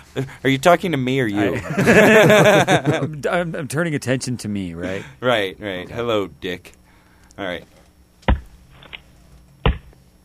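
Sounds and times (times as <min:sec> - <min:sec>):
speech: 0:00.2 - 0:06.8, 0:07.4 - 0:07.8
laughter: 0:01.4 - 0:03.2
wood being chopped: 0:08.2 - 0:09.0, 0:09.6 - 0:10.0.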